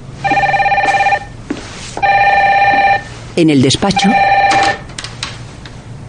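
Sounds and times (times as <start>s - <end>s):
telephone ringing: 0.2s - 1.4s, 2.0s - 3.1s, 3.9s - 4.9s
speech: 3.4s - 4.4s.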